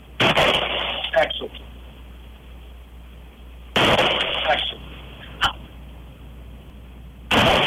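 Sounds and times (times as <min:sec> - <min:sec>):
gunshot from a fired gun: 0:00.2 - 0:01.2, 0:03.8 - 0:04.7, 0:07.3 - 0:07.6
speech: 0:01.2 - 0:01.6.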